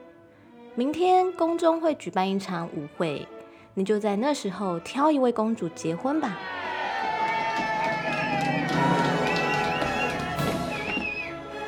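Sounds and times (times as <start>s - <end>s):
speech: 0.8s - 6.6s
crowd cheering at palace celebration: 6.2s - 11.6s.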